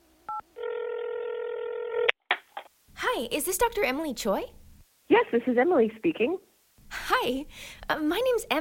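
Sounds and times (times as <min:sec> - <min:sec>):
telephone dial tone: 0:00.3 - 0:02.1
speech: 0:03.2 - 0:06.5, 0:07.1 - 0:08.5.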